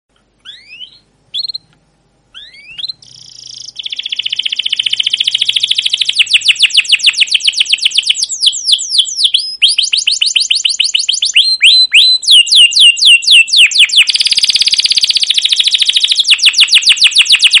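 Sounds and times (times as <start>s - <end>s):
canary chirping and trilling: 0.4s - 1.7s, 2.3s - 17.5s.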